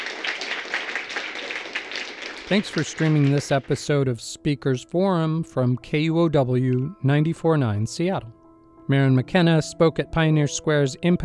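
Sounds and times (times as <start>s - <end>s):
audience applause: 0.0s - 3.8s
speech: 2.5s - 11.2s.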